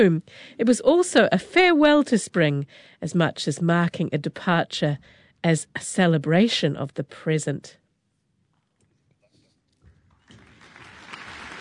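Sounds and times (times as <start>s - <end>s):
speech: 0.0s - 7.8s
audience applause: 10.2s - 11.5s.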